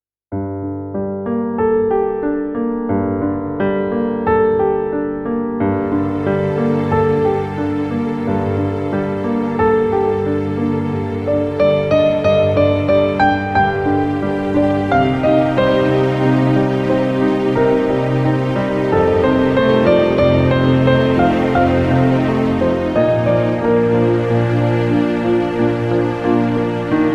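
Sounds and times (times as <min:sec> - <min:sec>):
piano melody: 0:00.3 - 0:27.1.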